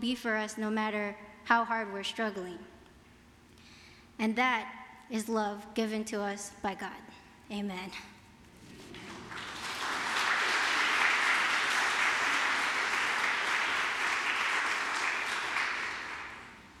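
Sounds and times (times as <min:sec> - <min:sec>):
speech: 0:00.0 - 0:02.7, 0:04.2 - 0:08.1
applause: 0:08.6 - 0:16.7.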